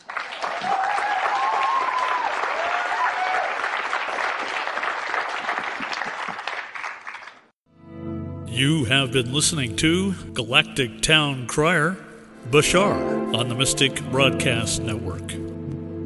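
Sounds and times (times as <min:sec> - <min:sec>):
audience applause: 0:00.0 - 0:07.5
faint whoops: 0:00.5 - 0:03.7
speech: 0:08.6 - 0:15.4.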